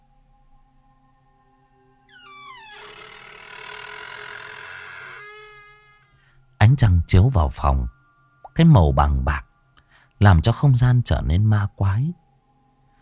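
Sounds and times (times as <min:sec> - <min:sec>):
door slowly creaking open: 0:02.1 - 0:06.2
speech: 0:06.8 - 0:08.0, 0:08.6 - 0:09.5, 0:10.2 - 0:12.2.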